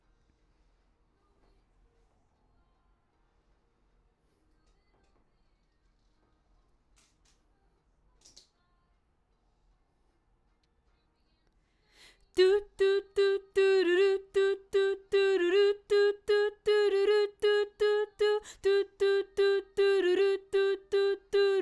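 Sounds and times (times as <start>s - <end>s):
background vocals: 12.1s - 21.5s.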